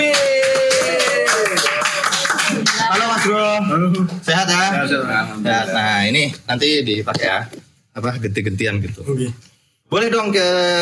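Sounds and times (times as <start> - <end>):
crowd clapping loudly: 0.0 - 3.4
speech: 3.2 - 10.7.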